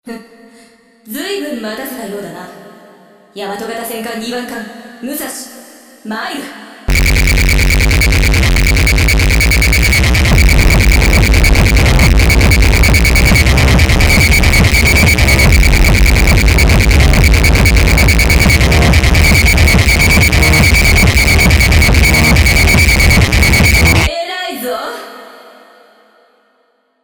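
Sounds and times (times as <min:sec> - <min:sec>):
noise: 0:06.9 - 0:24.1.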